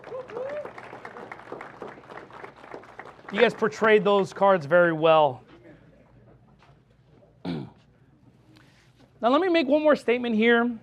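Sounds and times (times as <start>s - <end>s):
round of applause: 0.0s - 4.6s
speech: 3.3s - 5.4s, 9.2s - 10.8s.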